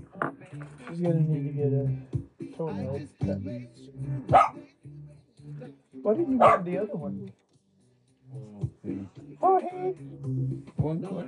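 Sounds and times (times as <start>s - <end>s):
speech: 0.6s - 4.7s, 5.6s - 7.4s, 8.3s - 11.2s
chihuahua barking: 4.3s - 4.6s, 6.4s - 6.7s.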